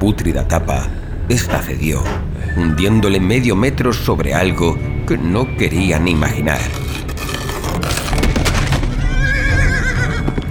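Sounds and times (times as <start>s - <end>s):
speech: 0.0s - 7.0s
dense rumbling background: 0.0s - 10.5s
horse hitched to a cart screaming a frantic neigh at night: 8.8s - 10.5s.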